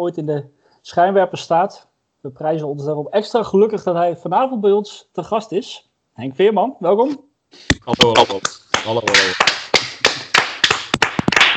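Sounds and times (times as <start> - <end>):
speech: 0.0 - 9.6
audience applause: 8.2 - 11.5.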